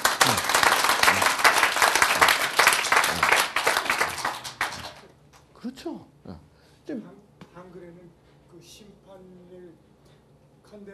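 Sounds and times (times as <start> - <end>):
audience applause: 0.0 - 5.1
speech: 10.7 - 10.9.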